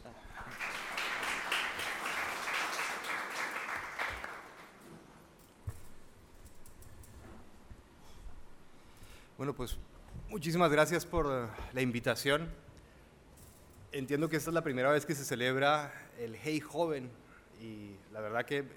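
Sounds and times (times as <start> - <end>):
audience applause: 0.0 - 4.8
speech: 9.4 - 12.6, 14.0 - 18.7.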